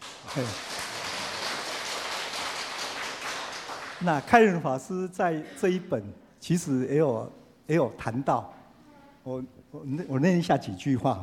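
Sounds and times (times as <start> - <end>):
crowd clapping: 0.0 - 4.6
speech: 0.3 - 0.7, 4.0 - 8.6, 9.2 - 11.2.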